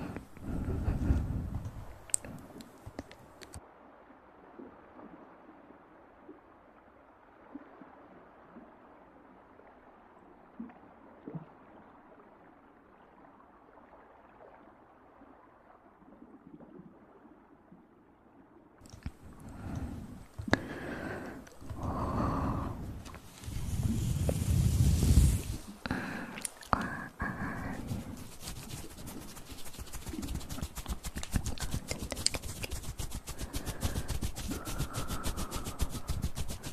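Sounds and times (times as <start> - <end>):
breathy mouth puffs and blowing: 0.0 - 3.6, 18.9 - 36.7
hand rubbing and rustling: 0.0 - 3.6, 18.9 - 36.7.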